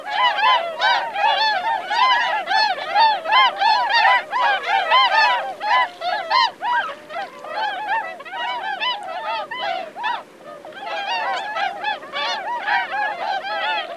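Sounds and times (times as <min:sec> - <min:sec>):
Bewick's swan calling: 0:00.0 - 0:13.9.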